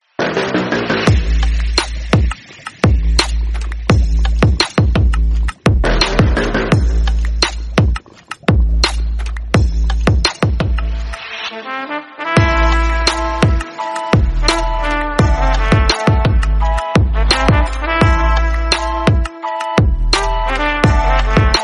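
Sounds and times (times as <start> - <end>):
remix music: 0.0 - 21.6.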